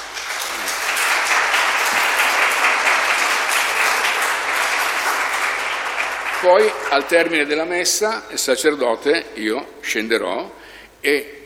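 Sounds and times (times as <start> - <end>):
audience applause: 0.0 - 7.6
speech: 6.4 - 11.4.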